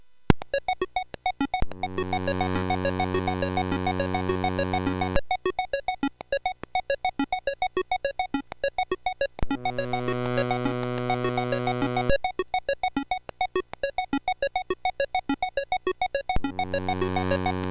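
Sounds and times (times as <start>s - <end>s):
SID MOS6581R3 chip sound: 0.4s - 17.6s.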